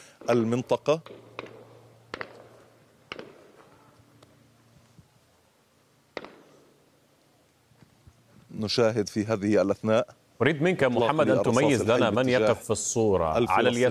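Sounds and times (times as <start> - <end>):
live gunshots fired toward young men: 0.2 - 3.8, 6.1 - 6.7
speech: 0.3 - 1.2, 8.6 - 13.9.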